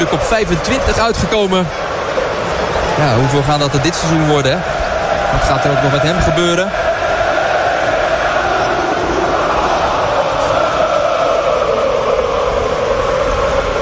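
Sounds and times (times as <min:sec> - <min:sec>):
speech: 0:00.0 - 0:01.9, 0:03.0 - 0:06.9
football stadium crowd singing a player's song: 0:00.0 - 0:13.8.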